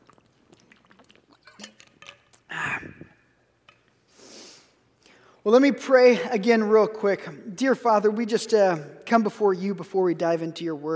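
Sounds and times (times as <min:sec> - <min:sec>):
person drinking water: 0:00.0 - 0:05.2
speech: 0:05.4 - 0:10.9.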